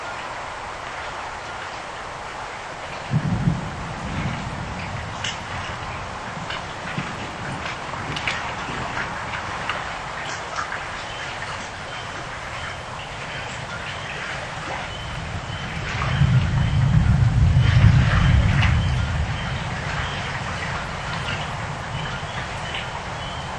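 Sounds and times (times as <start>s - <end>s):
thunder in an approaching storm: 3.0s - 9.4s, 15.6s - 22.9s.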